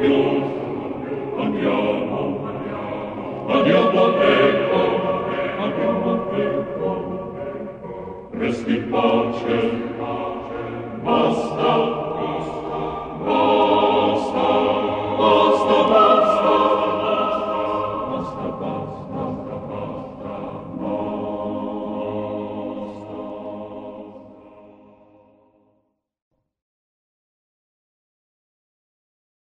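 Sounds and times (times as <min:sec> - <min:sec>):
canzonetta: 0:00.3 - 0:23.3.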